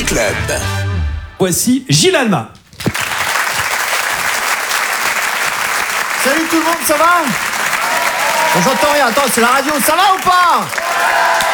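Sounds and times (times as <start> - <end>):
speech: 0.1 - 0.8, 1.4 - 2.6, 6.3 - 7.5, 8.5 - 11.5
comedy club audience applause: 2.8 - 11.5.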